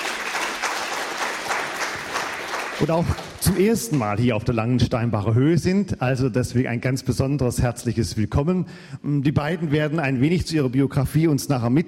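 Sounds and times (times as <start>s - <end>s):
audience applause welcoming two guests at a gathering: 0.0s - 4.0s
speech: 2.8s - 11.8s.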